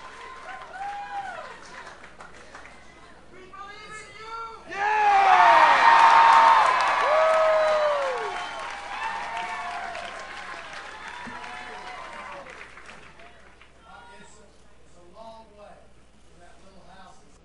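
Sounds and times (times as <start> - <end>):
crowd cheering and applauding at rally: 0.0 - 2.6, 4.8 - 13.7.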